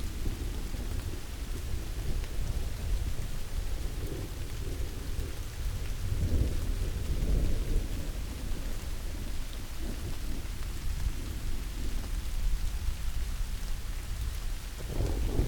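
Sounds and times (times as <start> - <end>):
rain: 0.0 - 15.4
thunder: 14.8 - 15.4.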